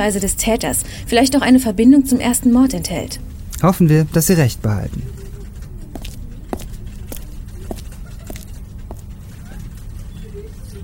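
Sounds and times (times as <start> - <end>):
speech: 0.0 - 5.2
hurried footsteps walking into an office: 5.5 - 9.8.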